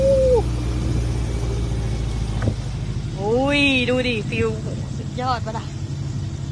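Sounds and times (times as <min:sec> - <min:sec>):
riding in a pickup truck: 0:00.0 - 0:06.5
speech: 0:03.9 - 0:05.8.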